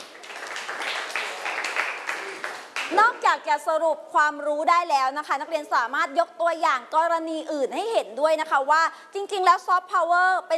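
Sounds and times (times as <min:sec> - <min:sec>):
students in a class applauding a classmate: 0:00.0 - 0:03.0
speech: 0:02.9 - 0:10.5.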